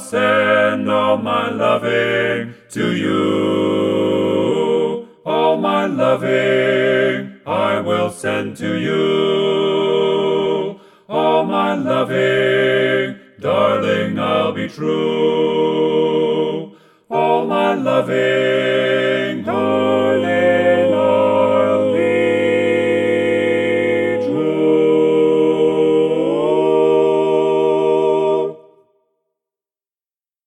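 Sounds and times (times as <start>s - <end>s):
song in full harmony: 0.0s - 29.0s.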